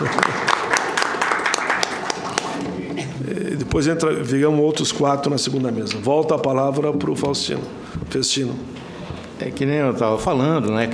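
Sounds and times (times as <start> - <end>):
audience applause: 0.0 - 3.0
speech: 3.8 - 10.9.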